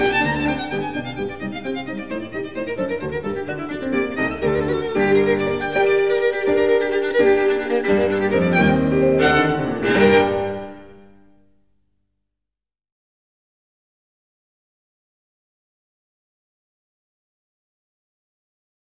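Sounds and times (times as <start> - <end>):
violin piece: 0.0 - 11.3.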